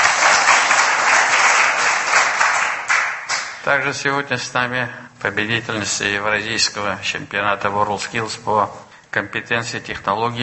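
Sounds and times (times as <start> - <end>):
audience applause: 0.0 - 3.6
speech: 3.6 - 10.4.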